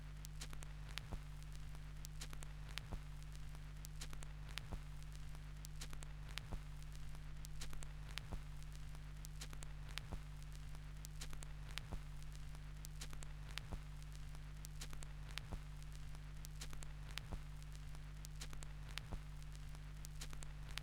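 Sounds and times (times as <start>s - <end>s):
vinyl record crackle: 0.1s - 20.8s.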